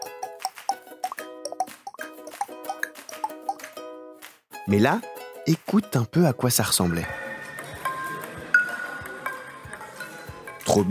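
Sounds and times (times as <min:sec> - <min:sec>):
ping-pong ball bouncing: 0:00.0 - 0:03.8, 0:07.5 - 0:10.6
speech: 0:04.7 - 0:07.2.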